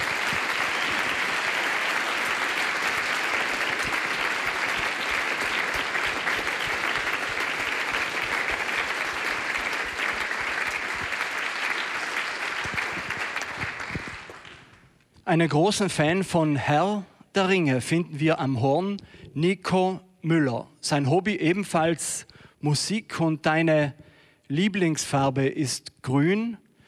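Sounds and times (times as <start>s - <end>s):
crowd applause: 0.0s - 14.8s
speech: 15.3s - 26.6s.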